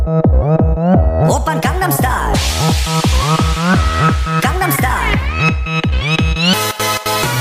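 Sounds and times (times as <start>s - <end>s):
sped-up audio with reverb: 0.1s - 7.3s.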